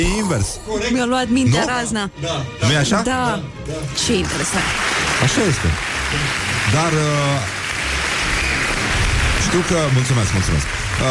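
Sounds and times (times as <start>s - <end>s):
speech: 0.0s - 7.6s, 9.5s - 11.0s
applause: 4.0s - 11.0s.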